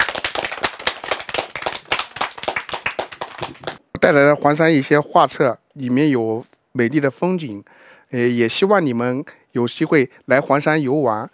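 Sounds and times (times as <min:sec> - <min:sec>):
crowd clapping: 0:00.0 - 0:03.8
speech: 0:03.4 - 0:11.3.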